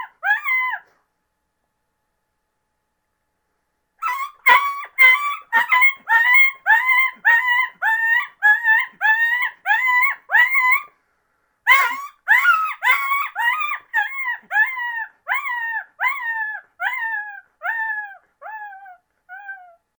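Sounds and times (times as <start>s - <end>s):
coyote yipping: 0.0s - 0.9s, 4.0s - 10.9s, 11.7s - 19.8s.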